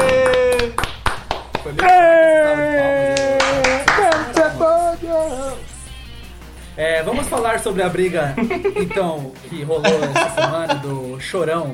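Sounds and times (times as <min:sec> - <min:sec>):
people clapping: 0:00.0 - 0:05.6
laughter: 0:01.7 - 0:05.6, 0:08.0 - 0:11.1
speech: 0:07.0 - 0:11.7.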